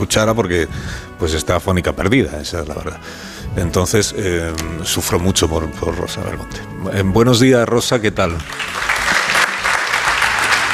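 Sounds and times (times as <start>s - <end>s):
speech: 0.0s - 9.0s
applause: 8.4s - 10.7s.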